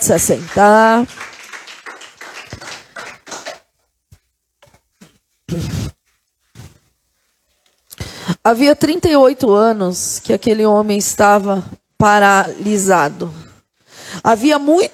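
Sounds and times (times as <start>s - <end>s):
speech: 0.0s - 1.2s, 8.4s - 13.4s, 14.2s - 14.9s
audience applause: 0.2s - 3.7s.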